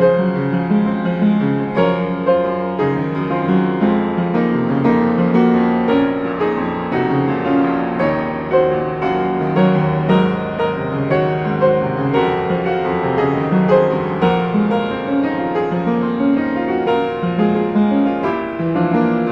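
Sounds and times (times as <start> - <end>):
piano: 0.0 - 19.3.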